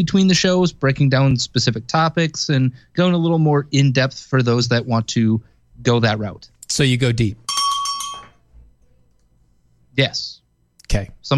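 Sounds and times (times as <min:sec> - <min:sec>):
speech: 0:00.0 - 0:07.4, 0:10.0 - 0:11.3
bell ringing: 0:07.4 - 0:08.5.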